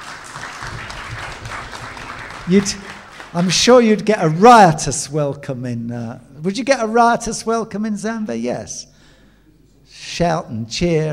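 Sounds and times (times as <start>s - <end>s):
audience clapping: 0.0s - 4.1s
speech: 2.5s - 8.9s, 10.1s - 11.1s.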